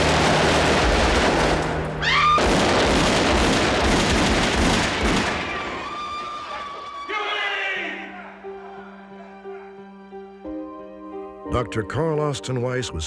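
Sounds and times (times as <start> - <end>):
gunfire from Huey Long's bodyguards shooting Dr. Carl Austin Weiss: 0.0 - 6.7
speech: 11.6 - 13.0.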